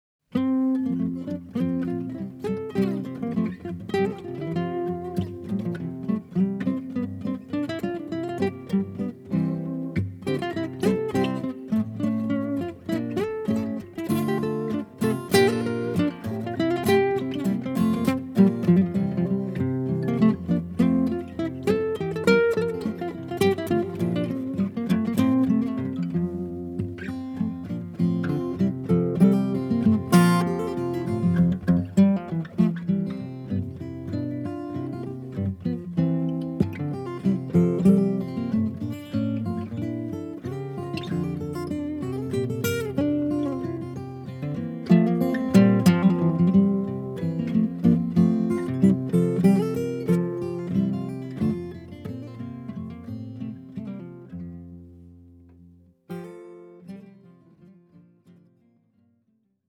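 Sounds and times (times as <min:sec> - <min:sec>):
music: 0:00.3 - 0:59.3.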